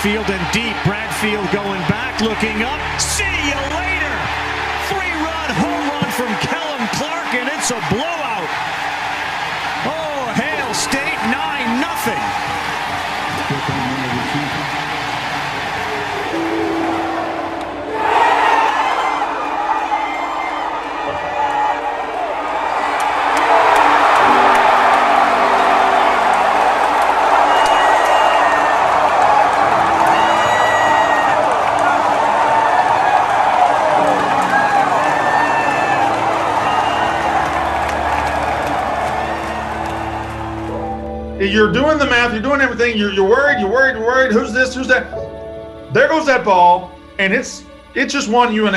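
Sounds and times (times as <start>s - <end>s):
speech: 0.0s - 1.6s, 7.7s - 8.7s, 41.6s - 45.1s, 45.9s - 48.7s
stadium crowd ovation after home run: 0.0s - 45.0s
whistles: 35.5s - 37.4s.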